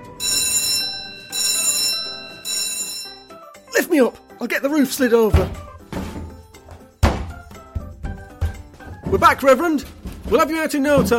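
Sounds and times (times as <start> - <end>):
alarm bell ringing: 0.0 - 5.4
speech: 3.8 - 5.7, 9.1 - 11.1.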